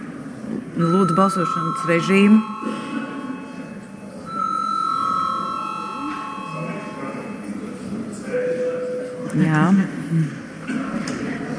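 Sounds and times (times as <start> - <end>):
murmur of voices in the chamber: 0.0 - 11.5
speech: 0.8 - 2.8, 9.4 - 10.4
parliament voting bell electronic tone: 0.8 - 7.9.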